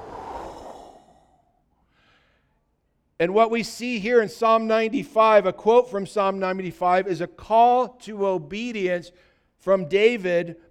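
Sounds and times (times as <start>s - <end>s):
voice imitating the Holy Spirit breathing: 0.0s - 2.6s
speech: 3.2s - 10.6s.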